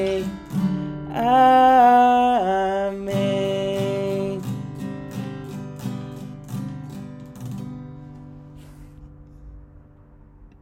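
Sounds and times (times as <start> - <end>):
prayer song: 0.0 - 0.4, 1.1 - 4.6.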